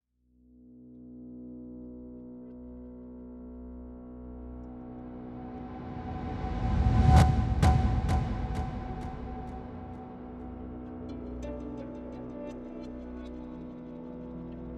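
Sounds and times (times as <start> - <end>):
tension music: 4.6 - 12.3.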